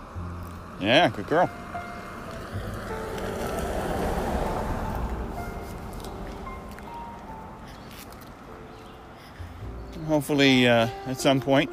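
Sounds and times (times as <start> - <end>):
speech: 0.8 - 1.7, 10.1 - 11.7
car driving past: 1.5 - 8.5.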